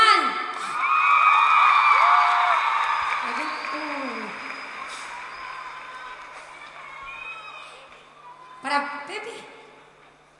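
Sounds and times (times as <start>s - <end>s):
crowd clapping and cheering for a band member: 0.8s - 8.2s.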